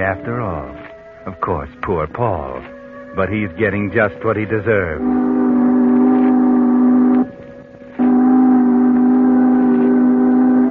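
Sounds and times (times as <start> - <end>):
speech: 0.0 - 5.4
boat engine hum: 0.0 - 10.7
departing boat horn blasts: 4.8 - 10.7.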